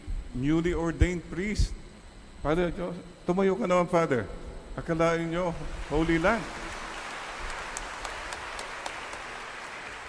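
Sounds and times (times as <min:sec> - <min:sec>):
speech: 0:00.4 - 0:01.8, 0:02.4 - 0:06.6
audience clapping: 0:05.8 - 0:10.0.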